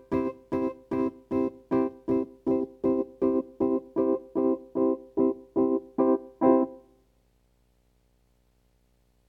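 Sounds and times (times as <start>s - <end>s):
piano playing: 0.0s - 6.9s.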